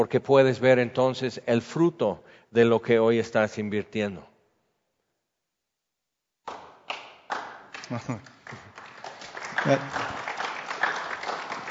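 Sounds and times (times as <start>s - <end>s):
speech: 0.0s - 4.3s, 7.9s - 8.7s, 9.6s - 10.2s
audience clapping: 6.5s - 11.6s.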